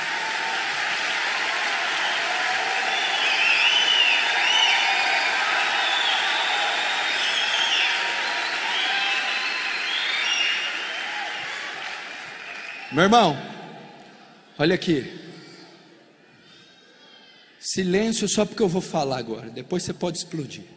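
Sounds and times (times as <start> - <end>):
large crowd applauding: 0.0 - 13.6
faint cheers and whistles: 0.0 - 14.2
speech: 12.9 - 13.5, 14.6 - 15.3, 17.8 - 20.7.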